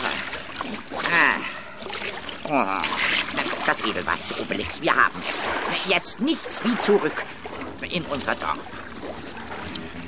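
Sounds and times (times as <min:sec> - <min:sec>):
Asterix and Obelix audio drama water splash as they land: 0:00.0 - 0:10.0
speech: 0:03.7 - 0:08.9.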